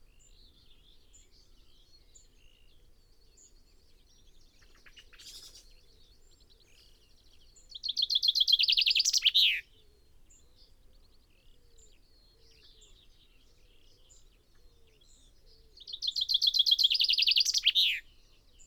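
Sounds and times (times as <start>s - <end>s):
common chaffinch Fringilla coelebs singing: 7.7s - 9.6s, 15.8s - 18.6s.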